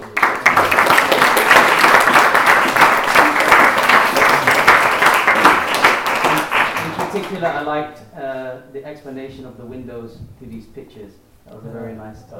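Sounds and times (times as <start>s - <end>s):
round of applause: 0.0s - 7.6s
speech: 7.4s - 12.3s.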